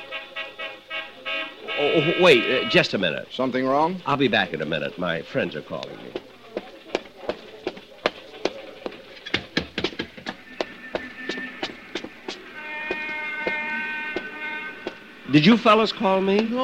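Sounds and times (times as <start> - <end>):
horn honking: 0.0 - 3.2, 10.2 - 16.6
speech: 1.8 - 6.4, 15.3 - 16.6
sharp irregular clacks and thumps: 6.0 - 13.6.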